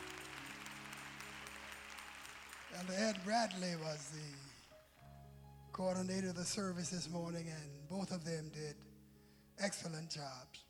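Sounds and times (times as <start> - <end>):
audience applause: 0.0 - 5.0
speech: 2.7 - 4.6, 5.7 - 8.9, 9.6 - 10.6.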